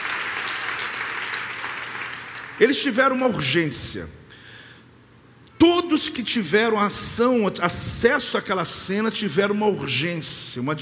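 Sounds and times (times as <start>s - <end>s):
applause: 0.0s - 2.7s
speech: 2.6s - 4.2s, 5.6s - 10.8s.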